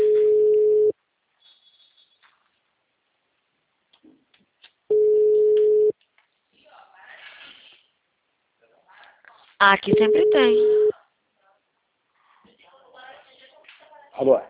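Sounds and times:
telephone ringback tone: 0.0 - 0.9, 4.9 - 5.9, 9.9 - 10.9
speech: 9.6 - 10.9, 14.2 - 14.4.

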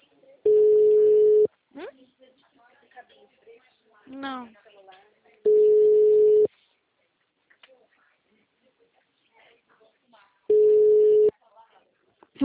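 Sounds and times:
telephone busy signal on a phone call: 0.5 - 1.5, 5.5 - 6.5, 10.5 - 11.3
speech: 4.1 - 4.6.

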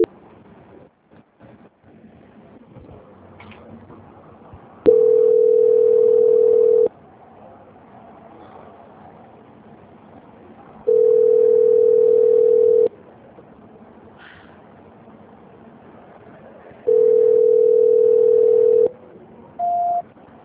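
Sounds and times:
telephone line tone beeps after a dropped call: 4.9 - 6.9, 10.9 - 12.9, 16.9 - 18.9, 19.6 - 20.0.

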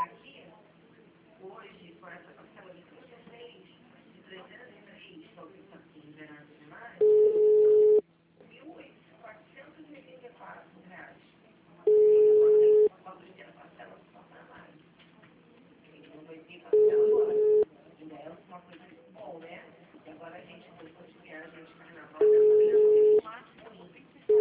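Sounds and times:
automated telephone answering system beep: 7.0 - 8.0, 11.9 - 12.9, 16.8 - 17.6, 22.2 - 23.2.

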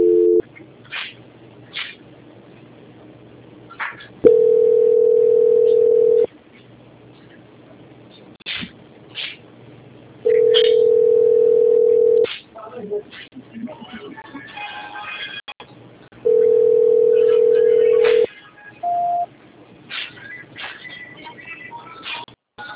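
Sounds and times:
telephone line beeps during a call transfer: 0.0 - 0.4, 4.3 - 6.3, 10.3 - 12.2, 16.3 - 19.3.

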